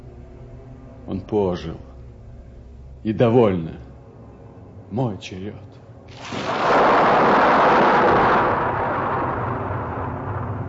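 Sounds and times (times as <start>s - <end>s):
speech: 1.1s - 1.9s, 3.0s - 3.8s, 4.9s - 8.2s
roll of thunder in a storm: 6.2s - 10.6s.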